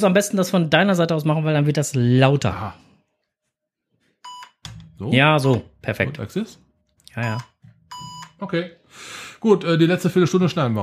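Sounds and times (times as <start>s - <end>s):
speech: 0.0s - 2.9s, 5.0s - 7.5s, 8.4s - 10.8s
Morse code: 7.2s - 8.4s.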